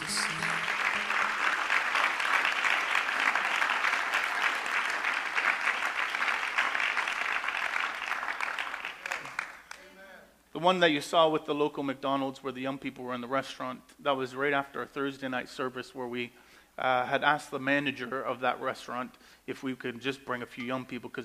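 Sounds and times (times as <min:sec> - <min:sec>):
audience clapping hands: 0:00.0 - 0:10.0
speech: 0:10.6 - 0:21.2.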